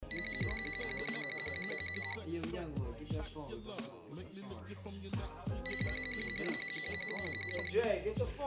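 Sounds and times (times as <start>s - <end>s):
phone ringing with a pulsing electronic ringtone: 0.0s - 2.2s, 5.7s - 7.8s
speech: 3.2s - 8.4s.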